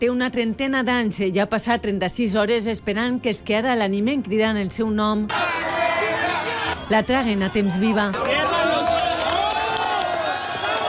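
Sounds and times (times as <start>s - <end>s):
speech: 0.0s - 5.8s, 6.9s - 8.6s
crowd cheering and applauding in a street for a rescued earthquake survivor: 5.3s - 10.8s.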